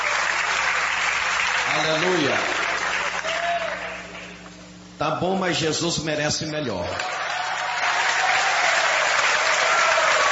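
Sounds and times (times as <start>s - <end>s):
audience applauding: 0.0s - 4.4s, 6.9s - 10.3s
speech: 1.7s - 2.6s, 5.0s - 7.2s.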